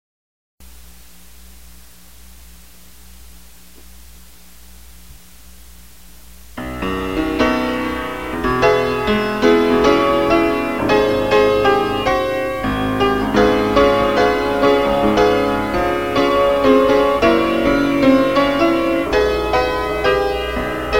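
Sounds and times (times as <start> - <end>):
piano: 6.6 - 20.9.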